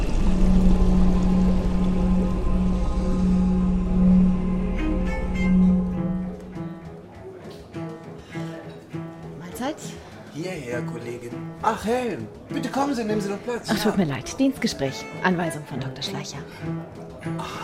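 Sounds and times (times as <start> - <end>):
water from an artificial sea swirling and draining into the Cloaca Maxima with debris: 0.0 - 5.7
low droning hum: 0.0 - 6.7
speech: 10.8 - 17.6.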